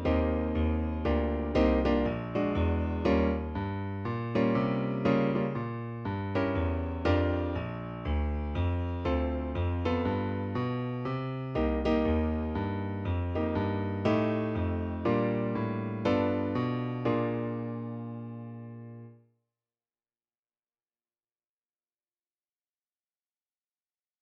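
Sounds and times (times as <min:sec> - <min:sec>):
12-bar blues piano: 0:00.0 - 0:19.2.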